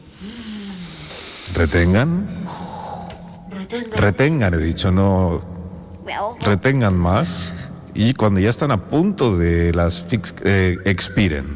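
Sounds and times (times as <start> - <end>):
several people inhaling together in a breathing exercise: 0.0 - 3.5
speech: 1.5 - 2.6, 3.7 - 5.5, 6.1 - 11.5.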